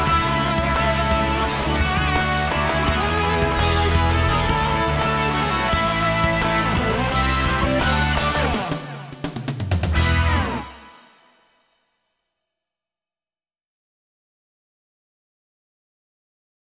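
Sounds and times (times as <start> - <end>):
intro music: 0.0 - 11.6.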